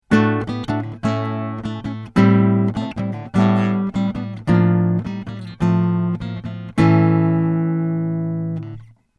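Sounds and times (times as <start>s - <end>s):
Takamine 135SC guitar slash chord: 0.1s - 8.9s.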